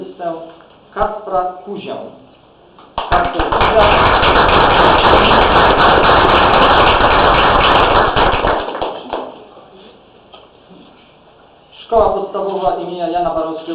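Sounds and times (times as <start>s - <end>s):
speech: 0.2s - 2.2s, 3.0s - 6.0s, 11.9s - 13.7s
audience applause: 3.0s - 9.4s.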